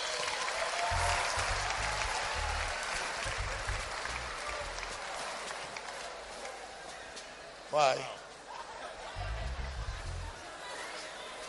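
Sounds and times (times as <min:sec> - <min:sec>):
audience clapping: 0:00.0 - 0:06.7
faint murmur of voices: 0:00.8 - 0:11.4
speech: 0:07.7 - 0:08.2.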